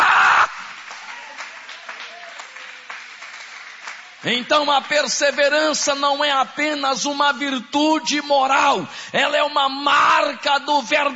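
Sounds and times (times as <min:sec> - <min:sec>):
audience applauding: 0:00.0 - 0:05.9
speech: 0:04.2 - 0:11.1.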